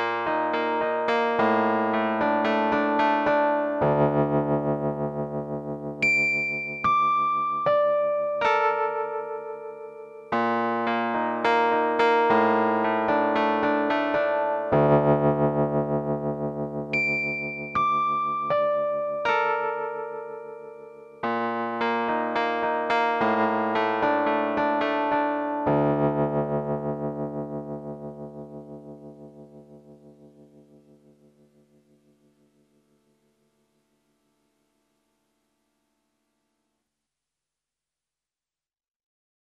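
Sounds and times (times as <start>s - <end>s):
V-Piano digital piano: 0.0s - 31.2s.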